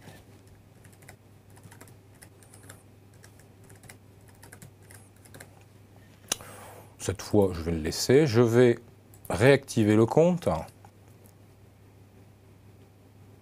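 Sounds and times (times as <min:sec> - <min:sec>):
low steady hum: 0:00.0 - 0:13.4
typing a password on computer keyboard: 0:00.8 - 0:05.6
speech: 0:07.0 - 0:10.7.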